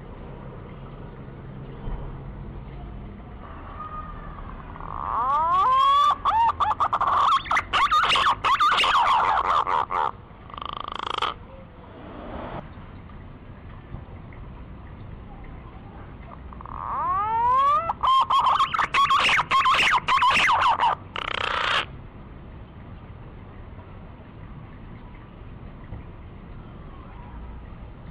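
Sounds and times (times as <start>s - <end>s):
green pigeon lure call of sweeping quavering whistles: 5.2s - 10.0s, 16.7s - 21.8s.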